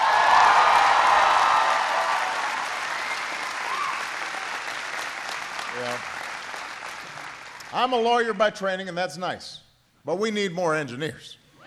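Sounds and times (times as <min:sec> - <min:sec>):
audience cheering: 0:00.0 - 0:07.7
applause: 0:00.0 - 0:08.5
speech: 0:07.7 - 0:11.4.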